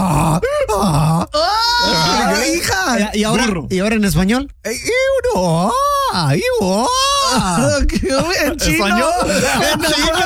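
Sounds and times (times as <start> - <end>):
person imitating a donkey bray: 0.0 - 2.5
speech: 3.1 - 10.2
laughter: 7.1 - 10.2.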